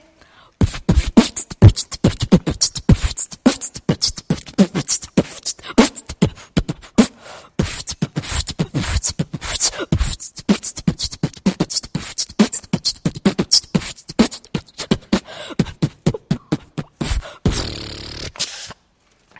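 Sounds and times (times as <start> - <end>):
beatboxing in a battle: 0.6 - 18.8.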